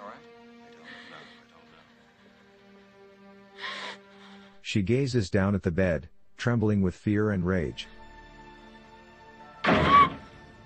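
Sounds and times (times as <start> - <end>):
speech: 4.7 - 8.0
door slamming shut: 9.6 - 10.4.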